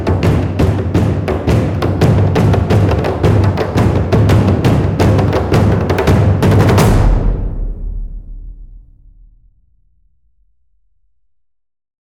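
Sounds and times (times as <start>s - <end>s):
frame drum: 0.0s - 9.5s.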